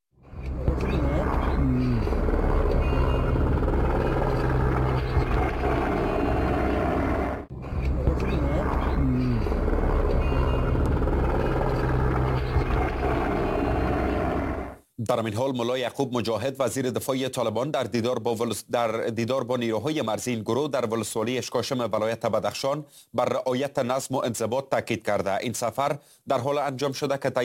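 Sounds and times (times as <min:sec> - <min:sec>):
helicopter rotors and engines droning at the district centre in Nusay: 0:00.3 - 0:14.8
speech: 0:15.1 - 0:27.4.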